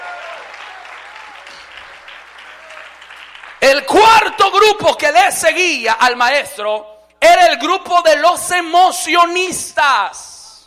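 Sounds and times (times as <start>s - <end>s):
audience applauding: 0.0s - 3.9s
speech: 3.7s - 10.3s.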